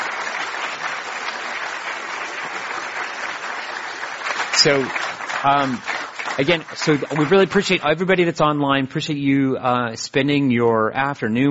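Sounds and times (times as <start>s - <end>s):
audience applause: 0.0s - 8.2s
speech: 4.6s - 11.4s.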